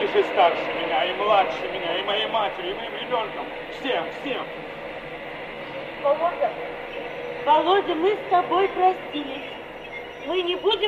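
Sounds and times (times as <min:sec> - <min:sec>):
electric commuter train coming to a stop: 0:00.0 - 0:10.8
speech: 0:00.2 - 0:04.7, 0:06.0 - 0:09.6, 0:10.2 - 0:10.8
short tonal squeals: 0:05.0 - 0:10.8.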